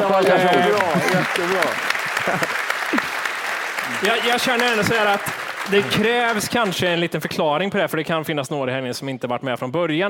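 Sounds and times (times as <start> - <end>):
speech: 0.0 - 3.0, 3.9 - 10.0
laughter: 0.0 - 5.0
audience applause: 0.0 - 7.1.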